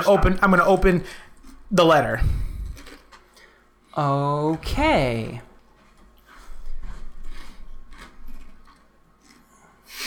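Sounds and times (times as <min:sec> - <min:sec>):
speech: 0:00.0 - 0:02.5, 0:04.0 - 0:05.5
crunching: 0:00.4 - 0:03.9, 0:05.6 - 0:09.8.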